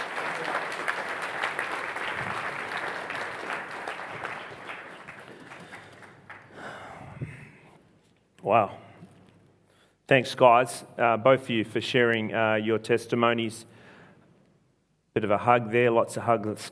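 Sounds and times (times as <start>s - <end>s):
audience applause: 0.0s - 6.8s
speech: 8.4s - 8.8s, 10.1s - 13.7s, 15.2s - 16.7s.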